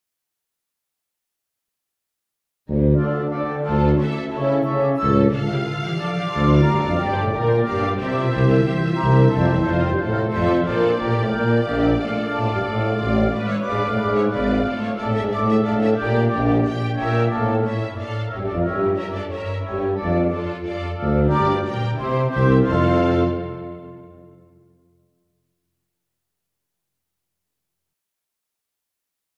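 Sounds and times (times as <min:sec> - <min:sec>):
instrumental music: 0:02.7 - 0:25.1.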